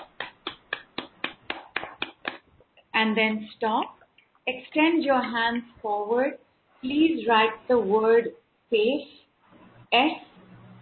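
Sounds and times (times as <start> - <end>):
hands clapping at chest level: 0.0 - 2.6
speech: 3.0 - 9.2, 9.9 - 10.3.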